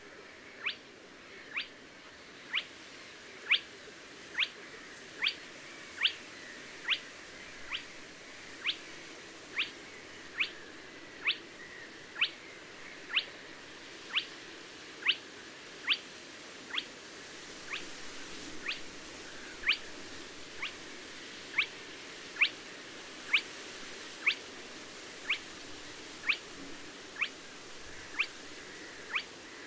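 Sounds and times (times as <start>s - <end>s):
soft background hiss: 0.0s - 29.6s
spotted crake calling: 0.6s - 0.8s, 1.4s - 1.8s, 2.5s - 2.7s, 3.4s - 3.7s, 4.3s - 4.6s, 5.2s - 13.4s, 14.0s - 14.4s, 15.0s - 16.1s, 16.7s - 16.9s, 17.7s - 17.9s, 18.6s - 20.9s, 21.5s - 21.8s, 22.4s - 22.6s, 23.3s - 23.5s, 24.2s - 24.5s, 25.2s - 25.6s, 26.2s - 26.6s, 27.2s - 29.6s.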